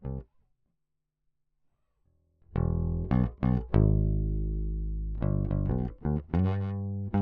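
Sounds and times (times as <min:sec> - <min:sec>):
bass: 0:00.0 - 0:00.3, 0:02.4 - 0:07.2.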